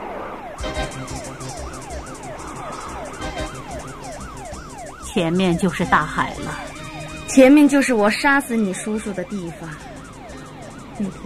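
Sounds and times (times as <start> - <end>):
police car siren approaching from behind: 0.0 - 11.2
speech: 1.0 - 1.6, 5.2 - 6.7, 7.4 - 9.9, 11.0 - 11.2.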